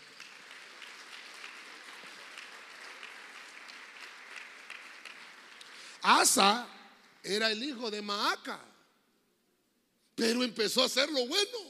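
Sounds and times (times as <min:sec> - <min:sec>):
audience clapping: 0:00.0 - 0:07.7
speech: 0:06.0 - 0:08.7, 0:10.2 - 0:11.6.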